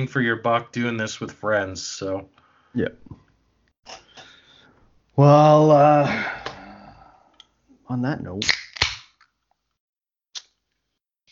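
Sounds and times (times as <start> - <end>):
speech: 0.0 - 3.2, 5.2 - 6.4, 7.9 - 8.6
sparkling water can popping open: 8.4 - 9.3.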